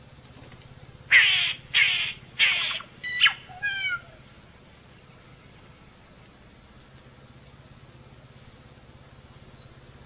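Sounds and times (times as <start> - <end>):
solitary cacique harsh nasal calls: 1.1 - 4.4.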